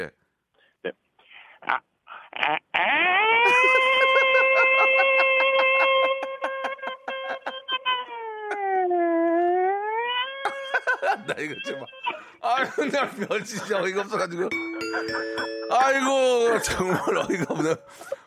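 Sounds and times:
speech: 0.0s - 0.2s, 0.8s - 1.0s, 1.6s - 3.7s, 11.1s - 18.2s
voice imitating civil defense air-raid siren: 2.7s - 6.5s, 7.4s - 10.6s
laughter: 3.4s - 8.8s, 10.4s - 15.6s, 16.5s - 18.2s.

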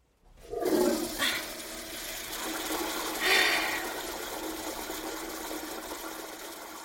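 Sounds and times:
squat toilet flushing via foot lever: 0.3s - 6.8s.

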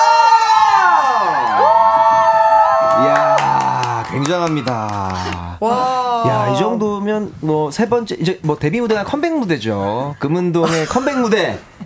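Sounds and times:
studio audience cheering and screaming: 0.0s - 5.1s
laughter: 3.0s - 5.6s
speech: 4.3s - 11.8s.

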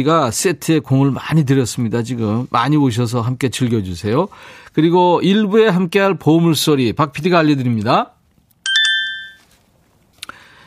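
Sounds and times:
speech: 0.0s - 8.2s
smartphone text message notification tone: 8.7s - 9.4s.

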